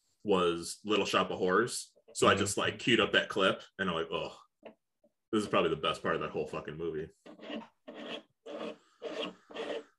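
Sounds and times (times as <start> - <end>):
speech: 0.2 - 8.3
scratching on a desk: 7.2 - 9.9.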